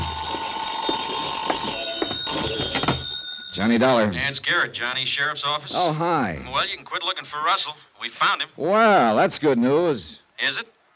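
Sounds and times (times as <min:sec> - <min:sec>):
telephone ringing: 0:00.0 - 0:05.0
speech: 0:03.6 - 0:10.8.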